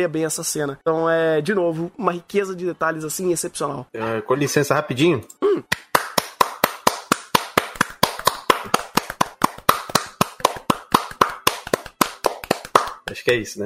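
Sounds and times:
speech: 0:00.0 - 0:05.8, 0:13.2 - 0:13.6
hands clapping in a steady rhythm: 0:05.7 - 0:13.6.

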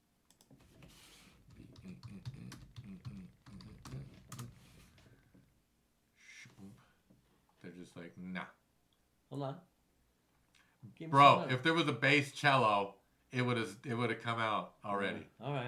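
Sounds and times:
typing on a computer keyboard: 0:01.4 - 0:05.0
speech: 0:07.9 - 0:08.6, 0:09.3 - 0:09.7, 0:11.0 - 0:15.6.

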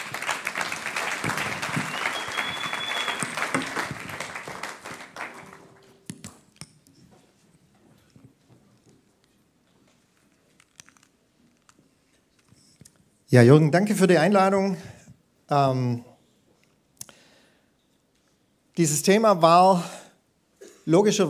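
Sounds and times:
audience applause: 0:00.0 - 0:06.1
speech: 0:13.3 - 0:14.9, 0:15.5 - 0:16.1, 0:18.8 - 0:20.0, 0:20.8 - 0:21.2.

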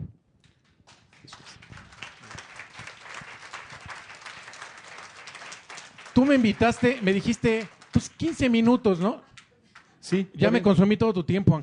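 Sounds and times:
audience applause: 0:00.9 - 0:10.0
speech: 0:06.2 - 0:09.3, 0:10.1 - 0:11.6.

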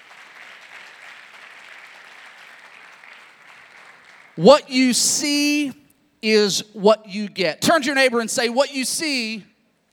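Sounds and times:
audience applause: 0:00.0 - 0:04.4
speech: 0:04.4 - 0:09.5.

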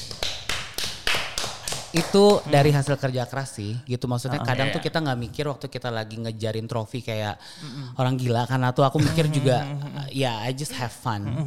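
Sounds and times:
hand claps: 0:00.0 - 0:02.8
speech: 0:02.0 - 0:11.4.

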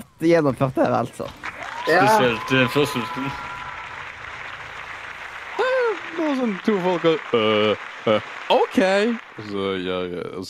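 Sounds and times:
speech: 0:00.2 - 0:03.5, 0:06.4 - 0:10.4
crowd applause soundboard effect: 0:01.3 - 0:10.4
wavering voice-like cheer: 0:01.4 - 0:09.6.

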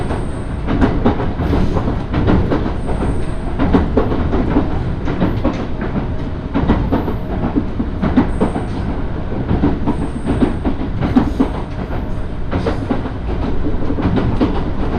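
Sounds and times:
Yoro Railway train running: 0:00.0 - 0:14.9.

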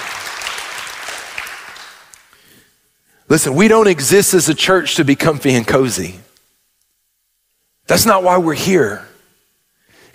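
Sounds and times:
church congregation applauding in a gym: 0:00.0 - 0:02.4
speech: 0:03.3 - 0:06.3, 0:07.9 - 0:09.1.

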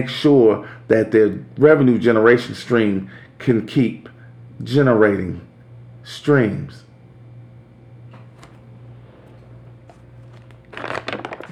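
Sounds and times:
speech: 0:00.0 - 0:06.8
paper rustling: 0:10.2 - 0:11.4.

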